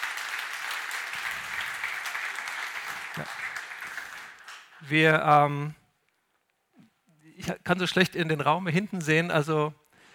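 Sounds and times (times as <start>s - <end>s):
audience applause: 0.0s - 4.8s
speech: 3.2s - 3.4s, 4.8s - 5.8s, 7.5s - 9.8s.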